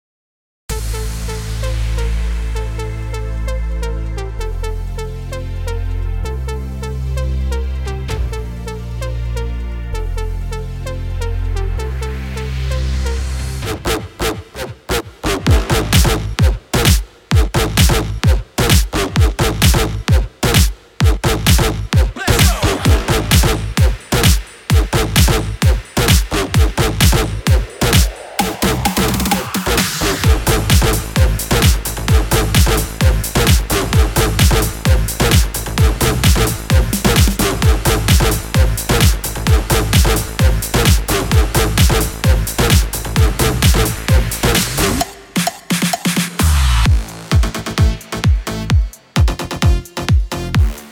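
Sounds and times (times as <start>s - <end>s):
electronic dance music: 0.7s - 50.9s.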